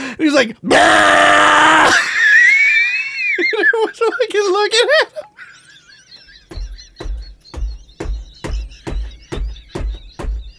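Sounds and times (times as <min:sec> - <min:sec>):
speech: 0:00.2 - 0:02.1, 0:03.5 - 0:05.3
laughter: 0:01.9 - 0:08.0
pounding on a chair armrest: 0:06.5 - 0:10.5.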